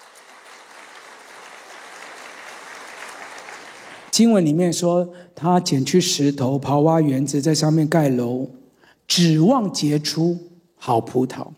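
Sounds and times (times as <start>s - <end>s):
audience applause: 0.0s - 4.1s
speech: 4.1s - 11.5s.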